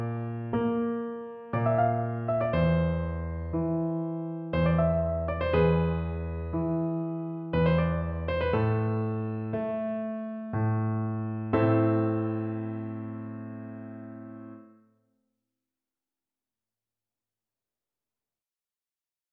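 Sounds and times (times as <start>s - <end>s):
electric piano: 0.0s - 14.7s.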